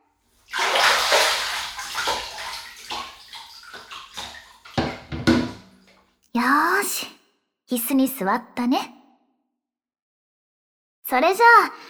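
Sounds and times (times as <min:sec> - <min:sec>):
water sloshing as someone climbs out of a bathtub: 0:00.3 - 0:06.0
speech: 0:07.7 - 0:09.0, 0:11.1 - 0:11.8.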